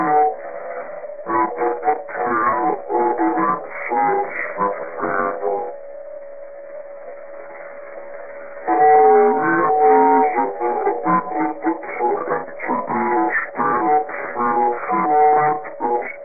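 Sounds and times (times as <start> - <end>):
radio noise collage: 0.0 - 5.8, 7.0 - 16.2.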